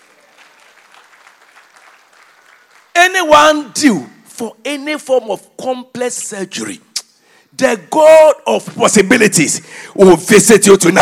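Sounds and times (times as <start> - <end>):
people clapping: 0.0 - 3.2
speech: 3.2 - 6.9, 7.5 - 11.0.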